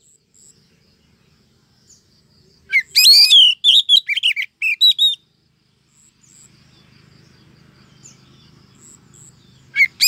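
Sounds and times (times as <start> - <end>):
female Oriental magpie-robin calling the male: 2.7 - 5.2, 8.8 - 10.0.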